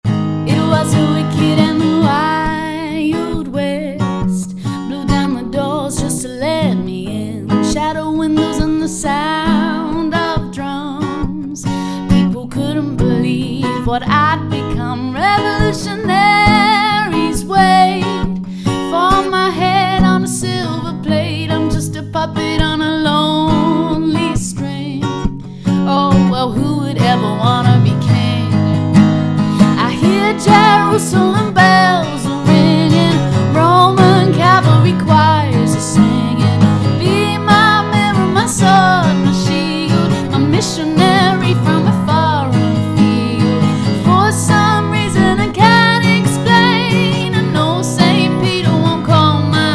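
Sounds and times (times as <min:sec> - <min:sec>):
acoustic music: 0:00.0 - 0:49.7.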